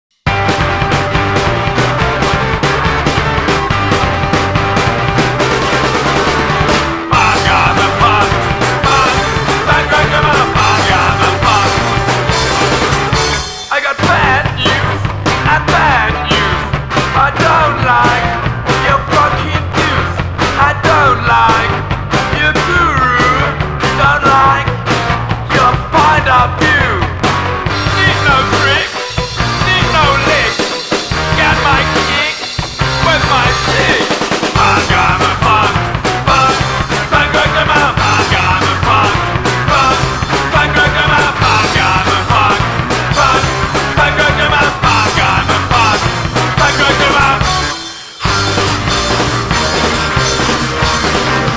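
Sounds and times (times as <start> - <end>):
punk rock drumming: 0.1 - 51.5.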